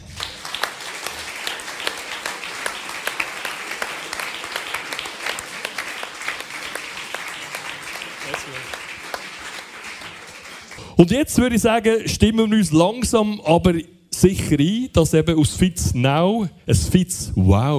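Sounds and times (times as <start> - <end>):
warm applause from live audience: 0.0 - 11.0
speech: 11.0 - 17.7.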